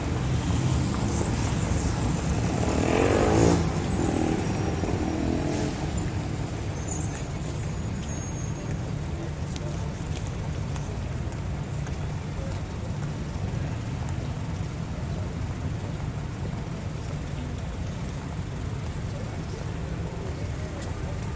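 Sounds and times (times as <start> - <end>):
urban city street traffic: 0.0 - 21.3.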